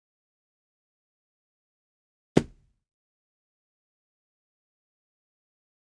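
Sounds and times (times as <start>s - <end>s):
head hitting a wall: 2.4s - 2.6s
punches to the stomach: 2.4s - 2.6s.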